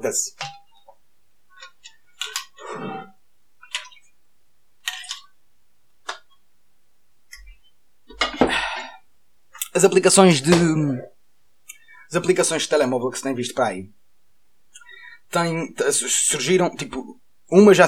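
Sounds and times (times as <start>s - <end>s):
speech: 0.0s - 0.5s, 9.8s - 11.1s, 12.1s - 14.0s, 15.3s - 17.8s
drinking water from a glass: 1.6s - 4.1s.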